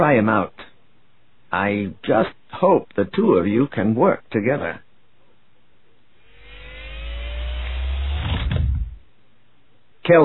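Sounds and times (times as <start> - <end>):
speech: 0.0 - 0.6, 1.5 - 4.8
spacecraft thrust engines igniting: 6.3 - 9.0.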